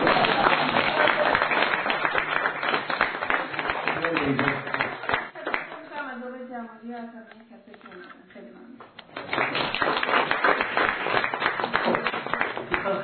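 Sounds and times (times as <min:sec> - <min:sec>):
audience applause for a guest speaker at a talk: 0:00.0 - 0:05.8, 0:09.1 - 0:12.9.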